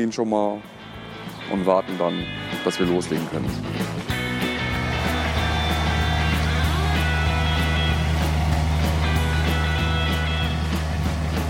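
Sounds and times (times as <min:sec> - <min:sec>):
speech: 0:00.0 - 0:00.8, 0:01.5 - 0:04.1
large ride-on lawn mower engine running: 0:05.2 - 0:11.4.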